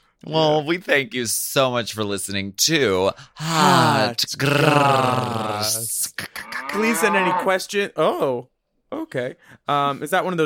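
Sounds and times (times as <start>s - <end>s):
speech: 0.2s - 10.4s
cow mooing: 6.4s - 7.6s.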